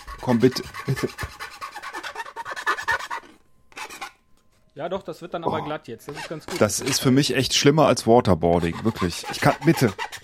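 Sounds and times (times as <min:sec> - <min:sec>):
metal file rasping: 0:00.0 - 0:04.2, 0:06.1 - 0:07.6, 0:08.4 - 0:10.2
speech: 0:00.2 - 0:01.5, 0:04.8 - 0:10.1.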